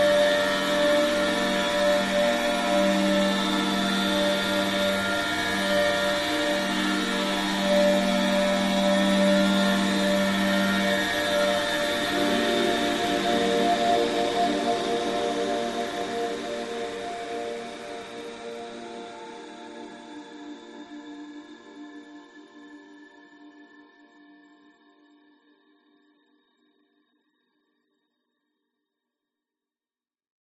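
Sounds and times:
dreamy yet sinister ominous confused whine: 0:00.0 - 0:19.8.

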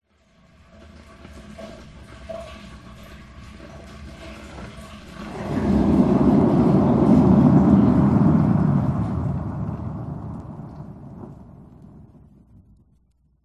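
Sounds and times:
bathtub drain with thick dense bubbles: 0:05.1 - 0:12.3.

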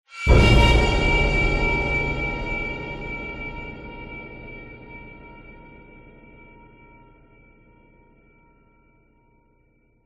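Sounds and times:
dark scary cinematic horror stab: 0:00.2 - 0:06.4.

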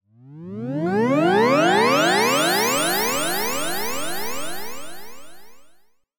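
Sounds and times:
ascending FM synth with delay: 0:00.8 - 0:05.6.

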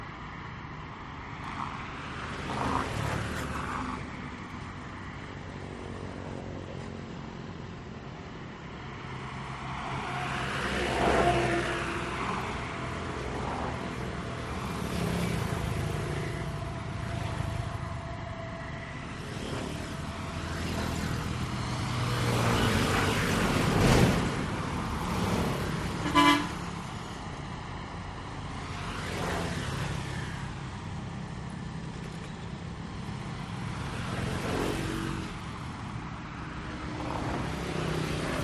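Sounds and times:
cars passing over cobbled speed bumps in Ben Tre Vietnam: 0:00.0 - 0:38.4
motorcycles passing over cobbled speed bumps in Ben Tre Vietnam: 0:09.6 - 0:38.4.

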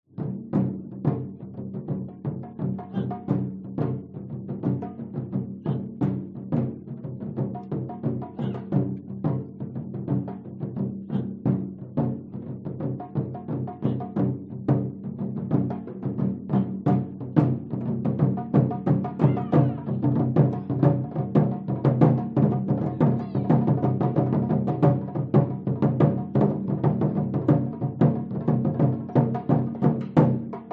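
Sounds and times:
Japanese taiko drums performance: 0:00.1 - 0:30.7
people chanting: 0:02.8 - 0:03.4, 0:08.2 - 0:08.8, 0:11.0 - 0:11.4, 0:19.1 - 0:21.0, 0:22.7 - 0:23.9.

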